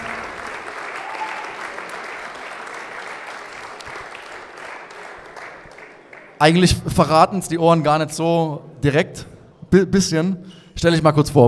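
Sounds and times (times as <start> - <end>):
audience applause: 0.0 - 6.4
speech: 6.4 - 11.4.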